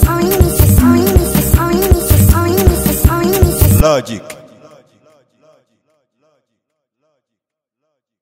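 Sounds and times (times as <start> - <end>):
music beat: 0.0 - 3.8.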